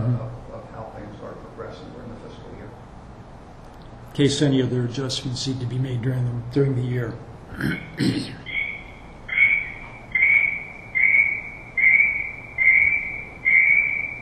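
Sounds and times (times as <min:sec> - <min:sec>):
speech: 0:04.2 - 0:08.4
alarm chirping from low battery: 0:07.8 - 0:14.2.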